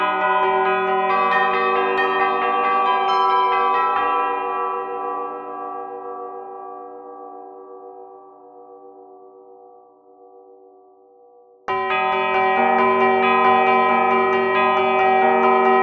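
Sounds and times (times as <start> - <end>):
bells in 12th root phi microtonal tuning: 0.0 - 8.0, 11.7 - 15.8.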